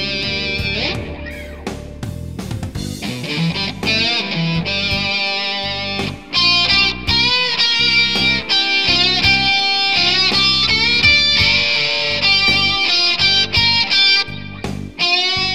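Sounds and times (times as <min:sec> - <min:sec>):
blues electric guitar with humbucker pickup: 0:00.0 - 0:15.5.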